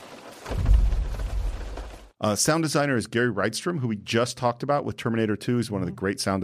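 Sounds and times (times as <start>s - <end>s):
thump of redwood trees falling: 0.0s - 2.1s
speech: 2.2s - 6.4s.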